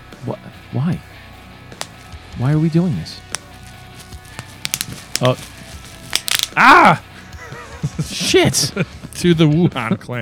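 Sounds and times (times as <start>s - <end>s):
speech: 0.7s - 1.1s, 2.4s - 3.3s, 5.2s - 5.6s, 6.6s - 7.1s, 7.9s - 10.2s
bubble wrap being popped: 1.7s - 2.2s, 3.3s - 7.0s
laughter: 6.8s - 9.1s.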